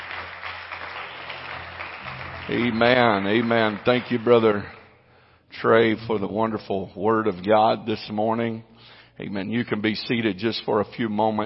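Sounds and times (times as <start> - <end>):
audience clapping: 0.0 - 4.9
speech: 2.5 - 4.8, 5.6 - 11.4.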